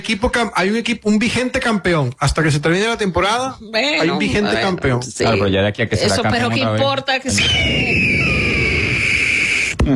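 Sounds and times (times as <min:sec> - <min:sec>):
speech: 0:00.0 - 0:08.4
eagle screech: 0:07.3 - 0:09.8.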